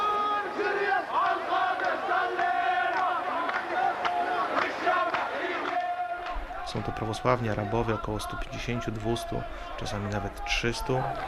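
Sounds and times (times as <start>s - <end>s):
crowd of young men singing and shouting: 0.0s - 11.2s
speech: 6.7s - 11.2s.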